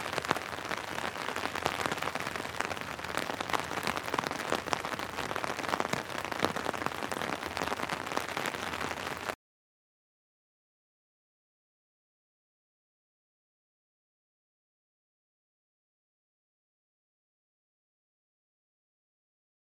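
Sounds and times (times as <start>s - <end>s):
light rain on umbrella heard from underneath: 0.0s - 9.4s.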